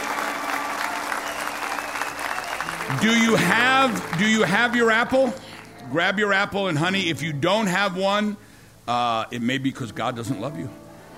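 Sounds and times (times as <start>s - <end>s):
audience clapping: 0.0s - 6.5s
speech: 2.9s - 10.8s.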